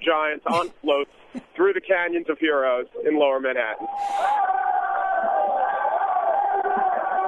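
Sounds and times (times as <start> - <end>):
speech: 0.0 - 4.4
parade crowd cheering: 3.7 - 7.2.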